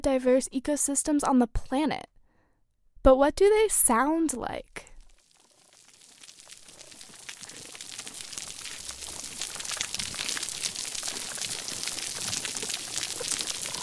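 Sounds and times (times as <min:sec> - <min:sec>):
speech: 0:00.0 - 0:02.1, 0:03.0 - 0:04.9
crackling of hundreds of snapping shrimp: 0:05.0 - 0:13.8.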